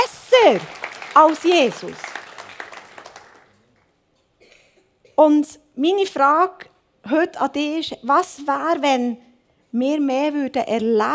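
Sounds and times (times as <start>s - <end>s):
crowd clapping: 0.0s - 3.9s
speech: 0.5s - 2.0s, 5.2s - 11.1s.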